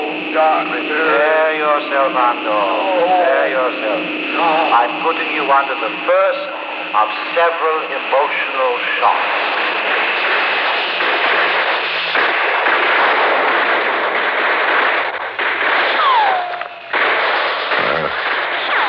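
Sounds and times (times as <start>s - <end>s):
speech: 0.4s - 10.0s
gunfire and blasts in a war scene: 9.4s - 18.8s
falling whistle: 16.0s - 16.8s.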